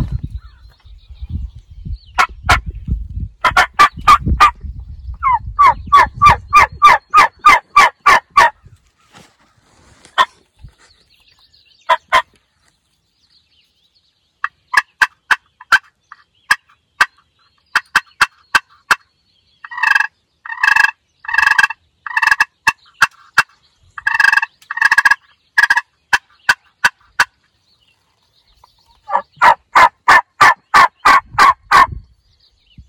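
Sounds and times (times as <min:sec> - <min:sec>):
hunter's glass friction call and mouth diaphragm imitating turkey yelps and gobbles: 0:03.4 - 0:09.3, 0:11.9 - 0:12.4, 0:14.4 - 0:27.4, 0:28.6 - 0:32.0.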